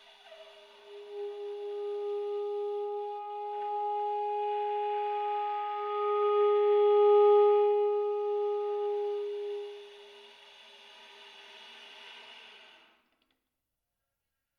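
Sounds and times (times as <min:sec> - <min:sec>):
tenor saxophone air tones and breathy notes: 0:00.0 - 0:10.7.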